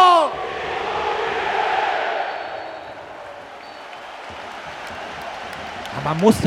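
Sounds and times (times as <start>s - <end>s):
person shouting: 0.0s - 0.4s
stadium crowd cheering: 0.0s - 6.4s.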